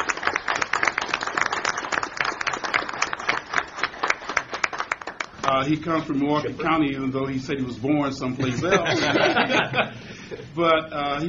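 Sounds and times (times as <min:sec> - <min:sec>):
audience applause: 0:00.0 - 0:05.6
speech: 0:05.5 - 0:11.2
laughter: 0:08.4 - 0:10.5.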